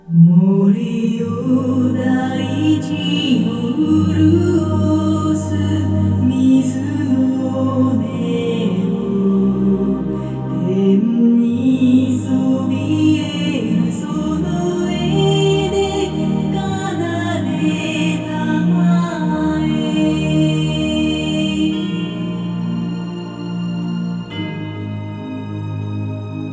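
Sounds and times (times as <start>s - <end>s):
music: 0.0s - 26.5s.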